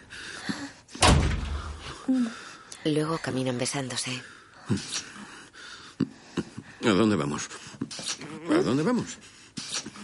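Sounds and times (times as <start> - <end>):
door closing: 1.0 - 1.9
speech: 2.1 - 5.1, 6.8 - 7.6, 8.5 - 9.3.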